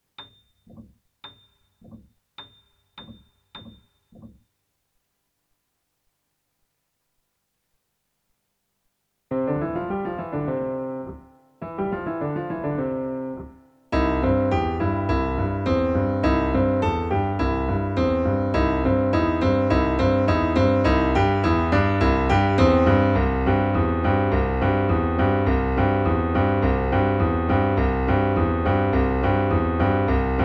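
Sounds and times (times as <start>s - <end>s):
intermediate piano: 9.3s - 30.4s.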